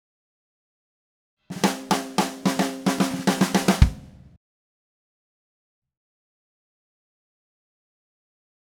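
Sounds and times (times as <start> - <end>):
DW Red Maple drum kit groove: 1.5 - 4.4.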